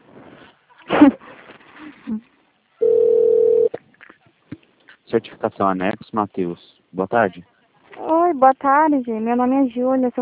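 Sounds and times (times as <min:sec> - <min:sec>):
speech: 0:02.1 - 0:02.3, 0:05.2 - 0:07.5, 0:08.4 - 0:10.2
telephone busy signal on a call to an extension: 0:02.8 - 0:03.8.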